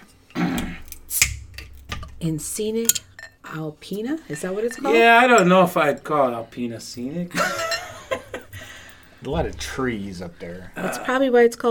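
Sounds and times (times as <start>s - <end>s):
beer bottle opened with church key: 0.6s - 2.1s
beer bottle cap pop with hiss of escaping gas: 1.1s - 1.5s
speech: 2.2s - 7.7s, 9.2s - 11.6s
laughter: 7.3s - 8.9s.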